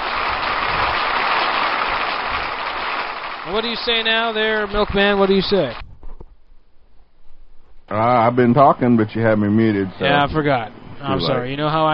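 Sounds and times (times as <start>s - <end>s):
dense applause from many hands: 0.0s - 5.8s
speech: 3.5s - 5.8s, 7.9s - 11.9s.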